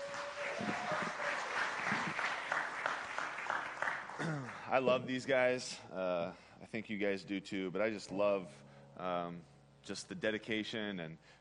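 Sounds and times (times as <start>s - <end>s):
church congregation applauding its worship team at a Sunday morning service: 0.0s - 5.1s
speech: 4.2s - 11.4s.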